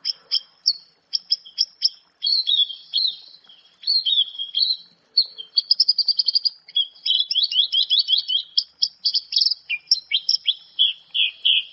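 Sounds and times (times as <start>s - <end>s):
Javan bush lark singing: 0.0s - 11.7s.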